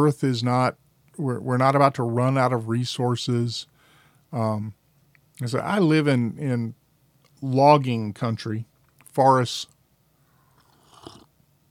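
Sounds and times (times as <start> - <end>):
speech: 0.0 - 3.7, 4.3 - 4.8, 5.4 - 6.8, 7.4 - 9.7
soft sip of coffee: 10.5 - 11.3.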